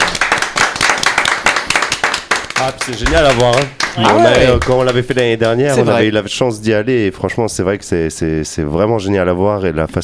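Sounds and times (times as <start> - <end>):
audience applause: 0.0 - 5.6
speech: 2.6 - 10.0.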